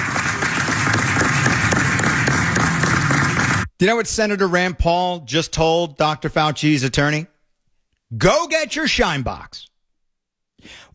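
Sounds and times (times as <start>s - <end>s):
room erupting in applause: 0.0s - 3.7s
speech: 3.8s - 7.3s, 8.1s - 9.7s.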